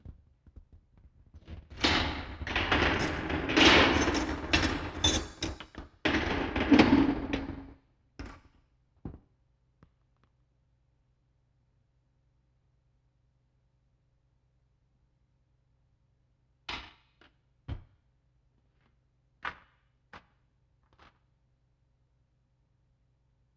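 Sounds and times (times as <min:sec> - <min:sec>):
canal lock gates: 0:01.8 - 0:07.7.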